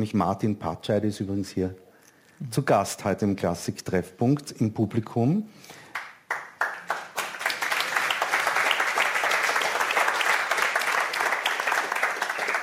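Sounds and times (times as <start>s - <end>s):
speech: 0.0s - 5.8s
audience applause: 5.9s - 12.6s.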